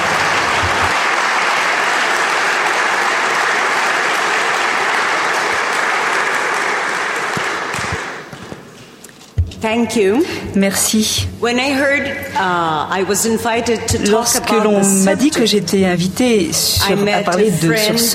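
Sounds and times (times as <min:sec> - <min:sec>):
audience applause: 0:00.0 - 0:08.3
speech: 0:09.6 - 0:18.1.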